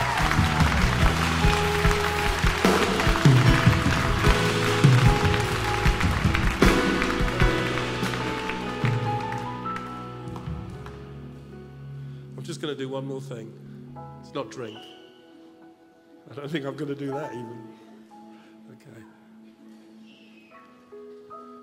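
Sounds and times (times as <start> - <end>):
audience clapping: 0.0 - 11.1
speech: 12.7 - 13.7, 14.3 - 15.0, 16.2 - 17.8, 18.7 - 19.2.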